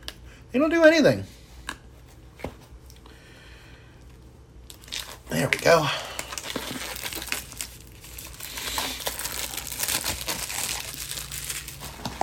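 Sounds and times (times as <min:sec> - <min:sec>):
speech: 0:00.5 - 0:01.4, 0:05.4 - 0:06.0
plastic wrapping crinkling as it is pulled off a box: 0:04.7 - 0:12.2.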